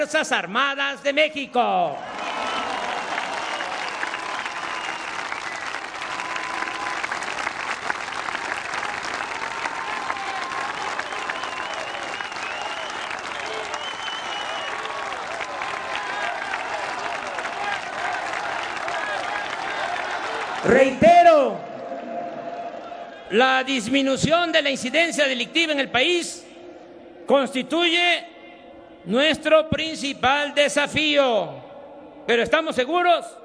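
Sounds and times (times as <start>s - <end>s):
speech: 0.0s - 2.2s, 20.7s - 21.6s, 23.3s - 26.5s, 27.3s - 28.3s, 29.0s - 31.6s, 32.2s - 33.4s
crowd applause: 2.0s - 23.4s.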